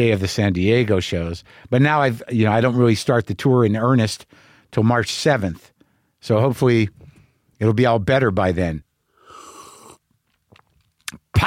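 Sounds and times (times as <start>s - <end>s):
speech: 0.0s - 7.0s, 7.6s - 8.8s
slurping coffee: 9.2s - 10.0s
wet mouth clicks: 9.3s - 11.2s.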